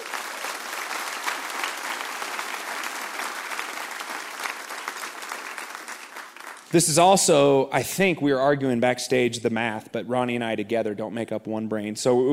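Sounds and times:
audience applause honoring campus pastors: 0.0s - 7.2s
speech: 6.7s - 12.3s.

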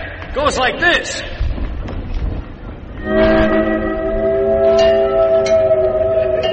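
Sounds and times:
speech: 0.4s - 1.4s
train whistle: 3.0s - 6.5s.

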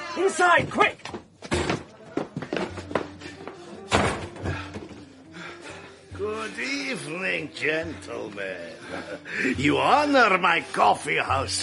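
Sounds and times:
speech: 0.2s - 1.2s, 6.2s - 11.6s
door slamming shut: 3.9s - 4.5s.

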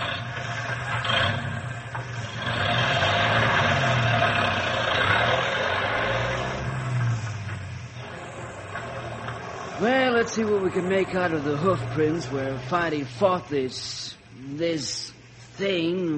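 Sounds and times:
truck engine rumbling as the truck drives off slowly: 0.0s - 16.1s
speech: 10.3s - 16.1s.

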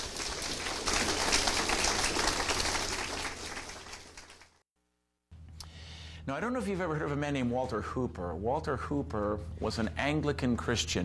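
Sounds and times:
audience applause welcoming a speaker back to the stage: 0.0s - 4.6s
speech: 6.3s - 11.0s.

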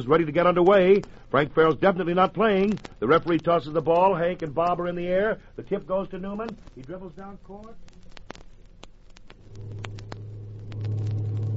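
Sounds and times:
speech: 0.0s - 7.9s
truck engine rumbling: 9.4s - 11.5s.

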